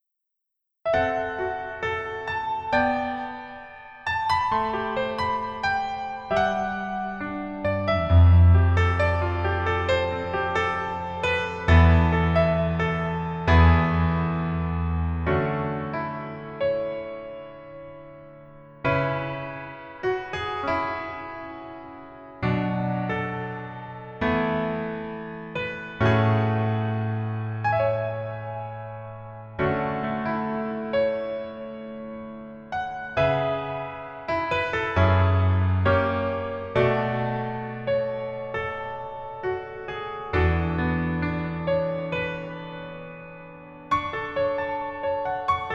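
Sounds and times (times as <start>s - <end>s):
piano music: 0.9s - 45.7s.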